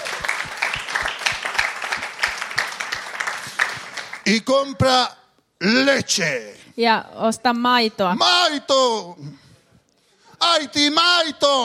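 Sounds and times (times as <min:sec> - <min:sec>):
crowd clapping hands in a steady rhythmic beat: 0:00.0 - 0:04.4
speech: 0:04.3 - 0:09.4, 0:10.4 - 0:11.6.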